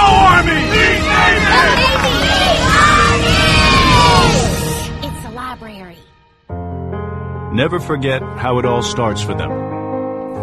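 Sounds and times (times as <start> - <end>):
crowd cheering and yelling: 0.0 - 4.7
speech: 7.6 - 9.8.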